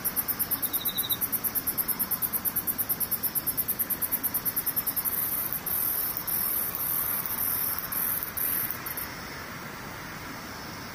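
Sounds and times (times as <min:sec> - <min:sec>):
steady soft hiss of noise: 0:00.0 - 0:10.9
insect singing in a very high thin trill: 0:00.1 - 0:01.4, 0:03.9 - 0:09.1.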